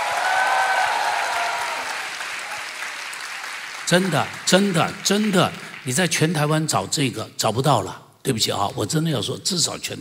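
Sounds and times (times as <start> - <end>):
cheering voices: 0.0 - 4.0
warm applause from a crowd: 0.0 - 6.3
speech: 3.9 - 10.0.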